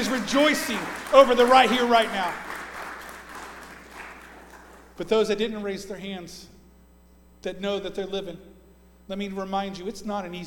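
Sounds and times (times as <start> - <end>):
crowd clapping: 0.0 - 5.0
speech: 0.1 - 2.5, 5.0 - 6.5, 7.4 - 8.5, 9.1 - 10.4.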